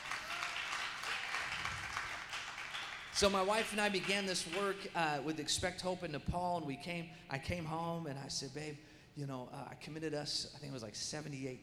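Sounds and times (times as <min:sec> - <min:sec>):
crowd of people applauding: 0:00.0 - 0:04.9
speech: 0:03.2 - 0:11.6.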